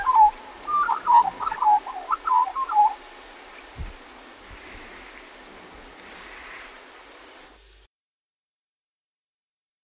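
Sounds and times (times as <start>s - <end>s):
black-backed Australian magpie calling: 0.0s - 3.0s.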